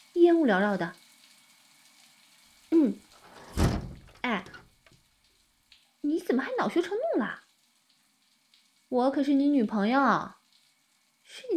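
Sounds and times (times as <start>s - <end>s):
speech: 0.2s - 1.0s, 2.7s - 3.0s, 6.1s - 7.4s, 8.9s - 10.4s, 11.3s - 11.5s
window being opened: 3.2s - 4.8s.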